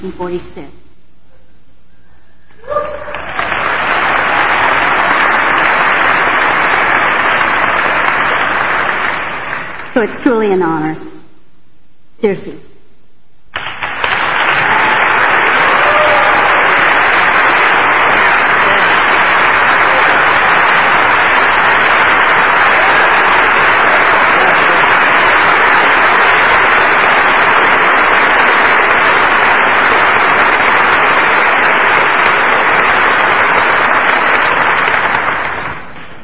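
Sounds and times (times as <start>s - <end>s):
speech: 0.0s - 0.8s, 10.0s - 11.1s, 12.2s - 12.7s
audience applause: 2.9s - 10.0s, 13.6s - 36.2s.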